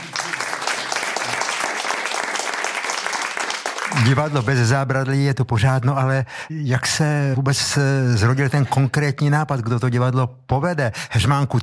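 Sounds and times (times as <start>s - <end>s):
audience applause: 0.0s - 4.7s
speech: 4.0s - 11.6s.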